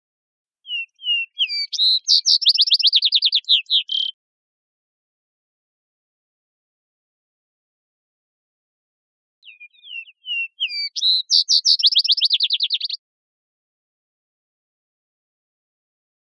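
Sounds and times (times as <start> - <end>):
Vesper sparrow song: 0.6 - 4.2, 9.4 - 13.0
speech: 1.8 - 2.6.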